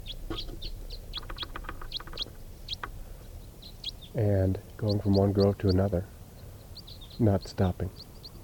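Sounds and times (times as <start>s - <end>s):
crossbill calls from a flock: 0.0s - 8.4s
speech: 4.2s - 6.2s, 7.2s - 8.1s.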